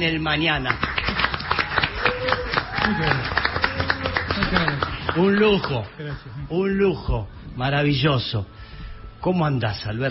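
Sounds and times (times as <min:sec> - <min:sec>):
speech: 0:00.0 - 0:01.0, 0:02.8 - 0:03.5, 0:04.4 - 0:08.6, 0:09.2 - 0:10.0
loud crowd applause: 0:00.3 - 0:06.2.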